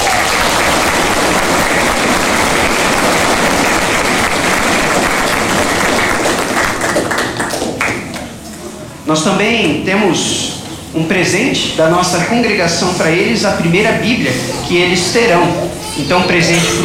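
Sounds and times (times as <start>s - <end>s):
applause: 0.0s - 8.3s
speech: 9.1s - 16.8s.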